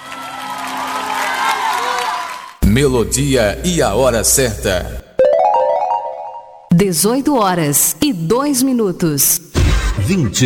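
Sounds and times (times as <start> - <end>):
audience applauding: 0.0 - 2.6
speech: 2.8 - 5.0, 6.8 - 10.4.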